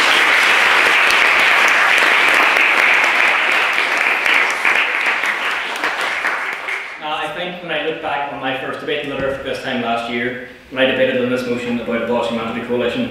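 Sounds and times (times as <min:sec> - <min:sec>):
audience applauding: 0:00.0 - 0:07.0
speech: 0:08.4 - 0:13.0.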